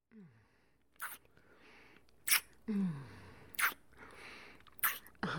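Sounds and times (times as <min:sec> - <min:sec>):
wet noises: 0:01.0 - 0:01.3, 0:03.6 - 0:03.8, 0:04.7 - 0:05.2.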